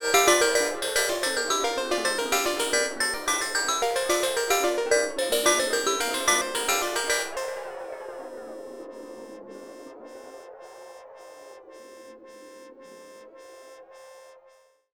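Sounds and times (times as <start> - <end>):
FM-like synth bells: 0.0 - 10.5.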